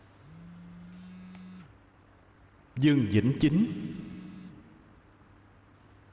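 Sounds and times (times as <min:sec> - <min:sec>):
mobile phone buzzing: 0:00.2 - 0:01.8, 0:03.9 - 0:04.7
speech: 0:02.8 - 0:04.1.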